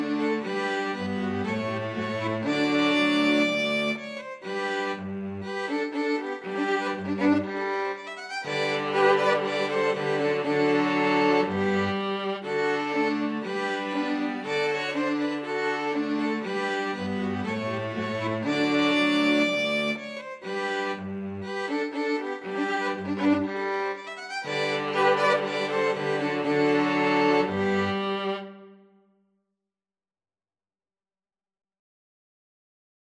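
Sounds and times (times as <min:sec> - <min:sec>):
string quartet playing: 0:00.0 - 0:28.8.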